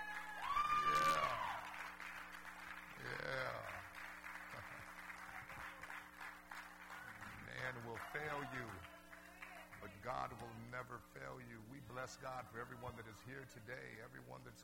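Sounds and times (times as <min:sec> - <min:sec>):
audience clapping hands: 0:00.0 - 0:10.1
speech: 0:10.1 - 0:14.6.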